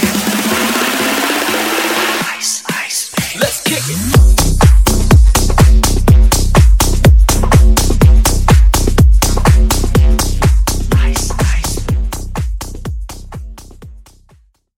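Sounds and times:
funk remix: 0.0s - 14.3s.

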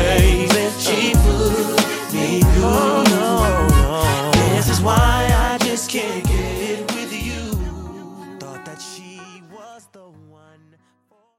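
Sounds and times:
DJ intro and outro music: 0.0s - 8.5s.

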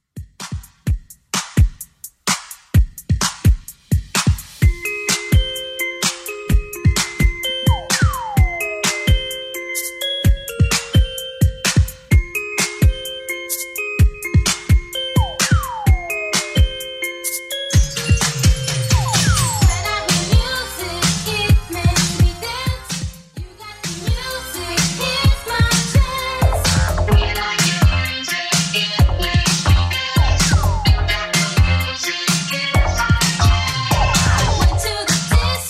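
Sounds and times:
80s Redrum drum machine beat: 0.0s - 35.6s.

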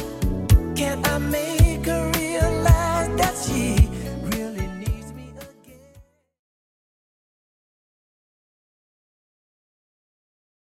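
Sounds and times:
1980s drum beat at 110 bpm: 0.2s - 5.0s.

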